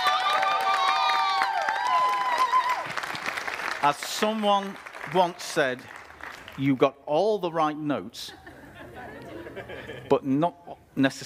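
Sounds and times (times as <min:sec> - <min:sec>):
audience applause: 0:00.0 - 0:06.6
speech: 0:03.8 - 0:06.0, 0:06.6 - 0:08.5, 0:09.6 - 0:11.2
laughter: 0:08.2 - 0:10.2.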